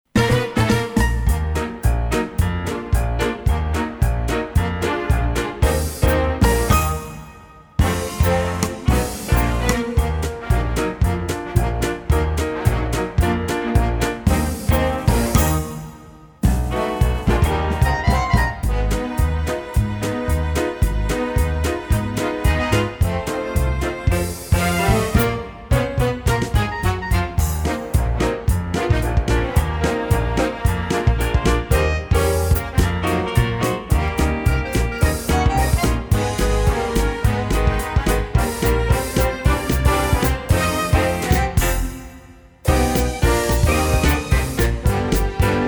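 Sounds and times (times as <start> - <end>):
backing track: 0.1 - 45.6.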